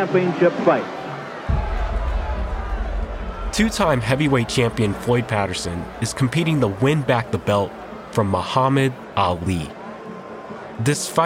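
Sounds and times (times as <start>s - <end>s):
speech: 0.0s - 1.0s, 3.6s - 9.8s, 10.8s - 11.2s
boxing arena crowd cheering: 0.0s - 11.2s
low rumble: 1.5s - 4.9s.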